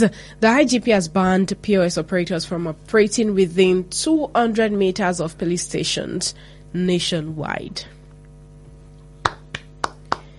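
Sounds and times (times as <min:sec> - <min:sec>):
speech: 0:00.0 - 0:08.0
faint steady hum: 0:00.0 - 0:10.3
hand clapping: 0:09.2 - 0:10.3.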